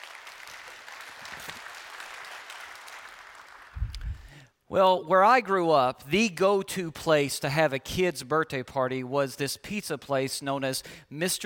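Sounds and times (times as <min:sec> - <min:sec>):
church congregation applause welcoming online viewers: 0:00.0 - 0:03.8
speech: 0:04.7 - 0:11.4.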